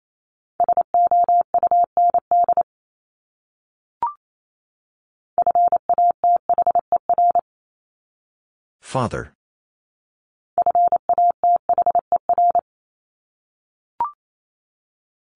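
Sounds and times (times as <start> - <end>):
Morse code beeps at 28 words per minute: 0.6 - 2.6, 5.4 - 7.4, 10.6 - 12.6
speech: 8.9 - 9.4.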